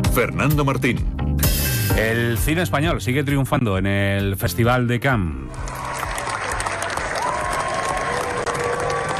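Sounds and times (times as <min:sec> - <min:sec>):
speech: 0:00.1 - 0:01.2, 0:01.9 - 0:05.7
audience applauding in a long ovation: 0:05.5 - 0:09.1.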